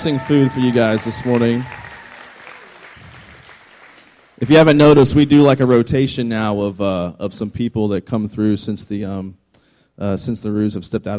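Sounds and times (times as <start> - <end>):
speech: 0.0 - 1.8, 4.4 - 9.4, 10.0 - 11.1
audience clapping: 0.0 - 4.7.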